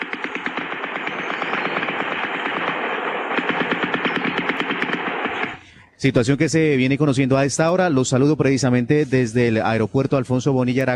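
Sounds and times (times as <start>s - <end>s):
automatic gunfire during armed clashes: 0.0s - 5.7s
speech: 6.0s - 10.9s.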